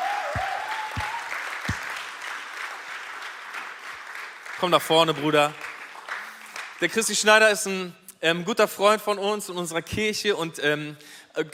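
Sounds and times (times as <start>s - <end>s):
audience applause: 0.0s - 6.8s
speech: 4.6s - 5.6s, 6.8s - 11.5s.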